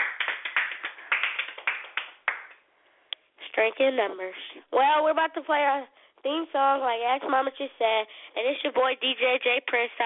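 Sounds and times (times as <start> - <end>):
hand clapping: 0.0 - 2.7
speech: 3.6 - 10.0.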